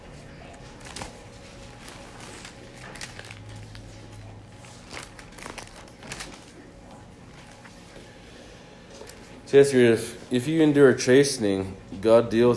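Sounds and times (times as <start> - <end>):
Bible pages being flipped: 0.5 - 8.1
speech: 9.5 - 12.5.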